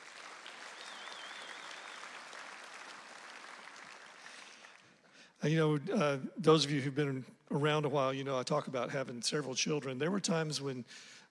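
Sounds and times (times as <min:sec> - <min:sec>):
applause for graduates and families at a church service: 0:00.0 - 0:05.0
speech: 0:05.4 - 0:11.2.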